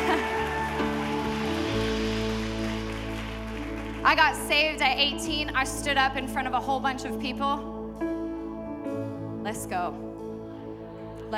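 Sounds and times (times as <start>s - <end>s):
laughter: 0.0s - 1.2s
audience clapping: 0.0s - 5.0s
sustained low musical tones humming: 0.0s - 11.3s
speech: 4.1s - 7.7s, 9.5s - 10.1s.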